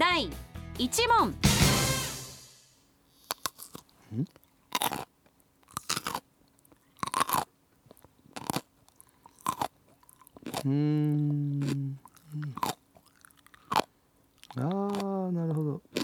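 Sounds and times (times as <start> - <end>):
speech: 0.0 - 1.5, 4.1 - 4.4, 10.6 - 11.8
person chewing crunchy food: 3.0 - 16.0
short hummed voice: 4.1 - 4.3, 10.6 - 12.6, 14.6 - 15.8.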